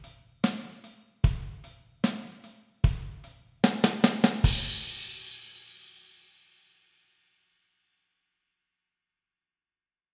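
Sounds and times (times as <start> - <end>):
75 bpm practice backing track: 0.0 - 5.0.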